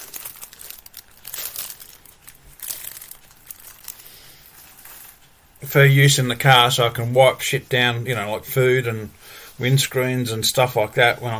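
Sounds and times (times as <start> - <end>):
plastic tissue packaging crinkling: 0.0 - 5.7
speech: 5.6 - 11.3.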